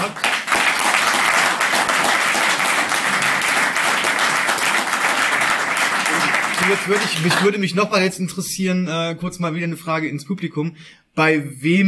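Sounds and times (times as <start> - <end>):
live audience applause: 0.0 - 7.6
speech: 6.7 - 11.8.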